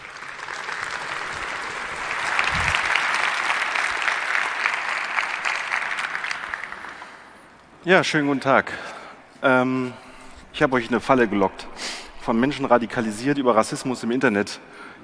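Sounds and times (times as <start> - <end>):
audience applause: 0.0 - 7.5
speech: 7.8 - 10.0, 10.6 - 15.0.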